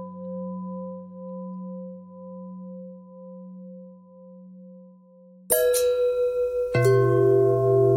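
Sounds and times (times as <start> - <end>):
long pentatonic bell thread: 5.5 - 7.9.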